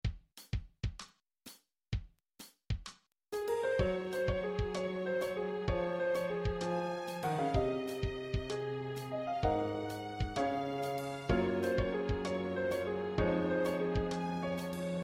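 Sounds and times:
musical accompaniment: 3.4 - 15.0.

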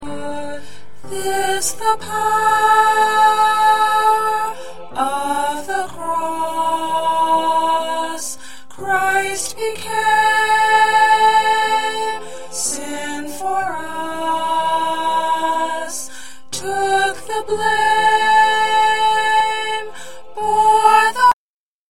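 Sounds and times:
soprano singing: 0.0 - 21.4.

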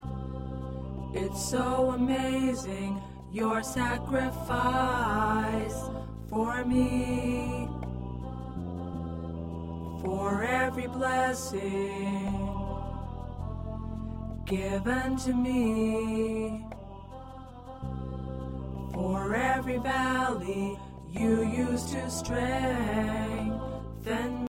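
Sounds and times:
tenor singing: 1.0 - 24.4.

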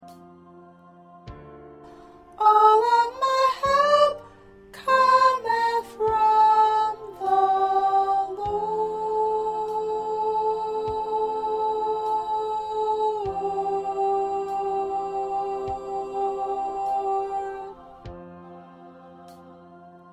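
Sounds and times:
second soprano singing: 1.9 - 20.1.

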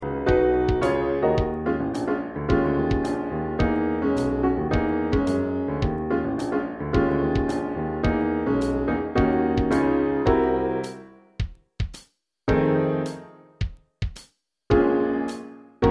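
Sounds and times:
piano: 0.0 - 11.4, 12.5 - 13.7, 14.7 - 15.8
drum: 0.3 - 1.6, 2.5 - 3.8, 4.7 - 6.0, 7.0 - 8.2, 11.4 - 12.6, 13.6 - 14.8.

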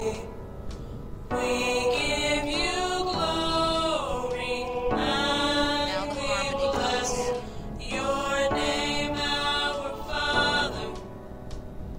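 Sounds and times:
tenor singing: 1.3 - 11.1.

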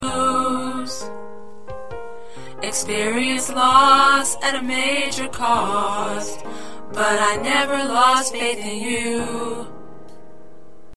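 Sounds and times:
tenor choir part singing: 0.0 - 1.1, 2.6 - 9.8.

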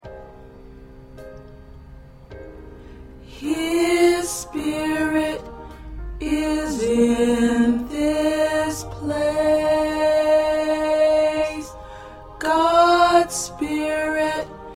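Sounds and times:
tenor choir part singing: 3.3 - 14.7.

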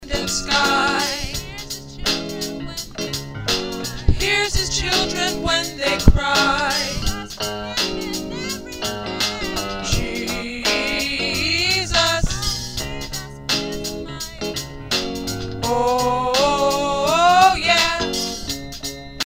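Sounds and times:
tenor singing: 0.0 - 3.2, 4.0 - 15.0, 15.6 - 18.5.

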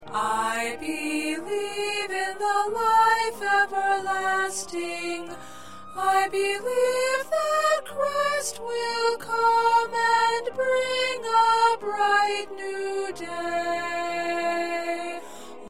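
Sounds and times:
soprano singing: 0.0 - 15.6.

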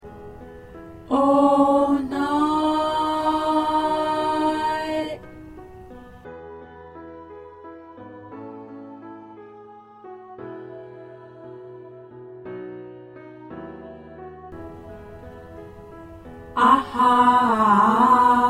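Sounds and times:
tenor singing: 1.1 - 5.4, 16.5 - 18.4.

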